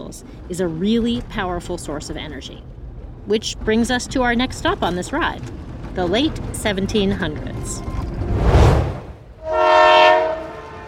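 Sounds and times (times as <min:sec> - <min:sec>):
train rumbling past: 0:00.0 - 0:10.8
speech: 0:00.1 - 0:07.9
train horn blast: 0:09.4 - 0:10.8.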